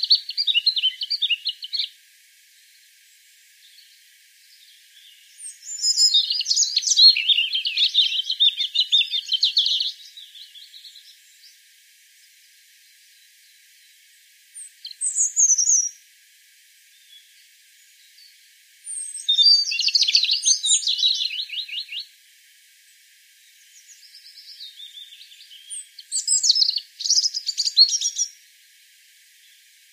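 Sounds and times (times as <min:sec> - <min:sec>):
European robin singing: 0:00.0 - 0:02.0, 0:03.7 - 0:11.5, 0:14.6 - 0:16.0, 0:18.9 - 0:22.1, 0:23.6 - 0:28.4.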